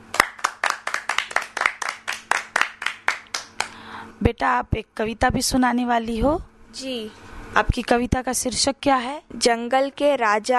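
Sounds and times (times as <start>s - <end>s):
group of children clapping in a quick steady rhythm: 0.0s - 3.8s
speech: 4.2s - 10.5s.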